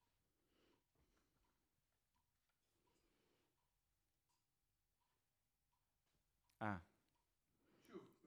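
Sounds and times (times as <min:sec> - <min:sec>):
vocals: 0:06.6 - 0:06.8.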